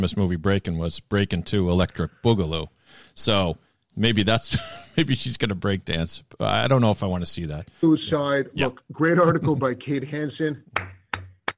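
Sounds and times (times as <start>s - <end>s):
speech: 0.0s - 10.9s
laughter: 4.4s - 5.1s
hands clapping: 10.8s - 11.5s.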